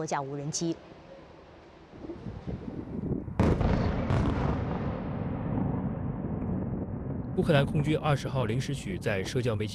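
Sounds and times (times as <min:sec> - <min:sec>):
speech: 0:00.0 - 0:01.0, 0:07.4 - 0:09.7
strong explosions during missile attack: 0:02.2 - 0:09.1.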